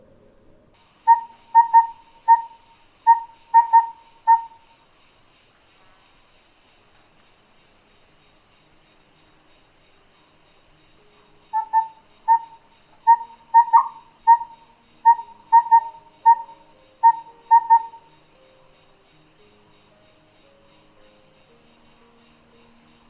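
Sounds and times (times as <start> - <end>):
calm night forest ambience: 0.0 - 23.0
mystical owl hooting in a calm night forest: 0.8 - 4.8, 11.1 - 19.6.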